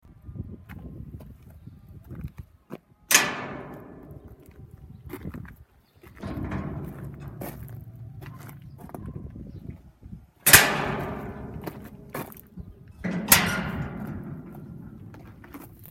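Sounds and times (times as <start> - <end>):
entrance gate noises: 3.1 - 5.4, 6.0 - 15.8.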